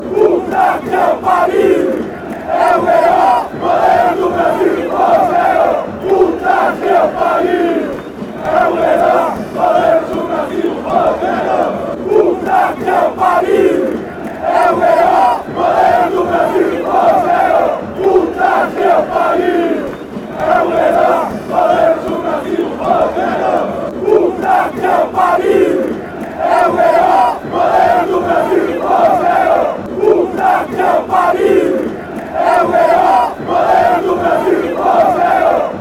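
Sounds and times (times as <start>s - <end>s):
football crowd chanting in Sao Paulo: 0.0s - 35.7s.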